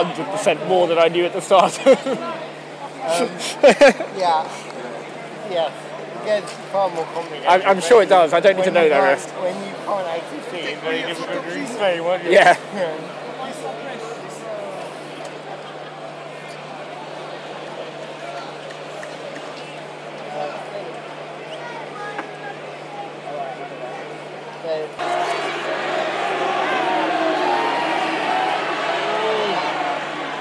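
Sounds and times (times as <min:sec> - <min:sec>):
speech: 0:00.0 - 0:04.6, 0:05.5 - 0:13.8
laughter: 0:01.5 - 0:02.4, 0:03.1 - 0:04.2, 0:15.4 - 0:16.2
large stadium crowd roaring and chanting heave: 0:25.0 - 0:30.4.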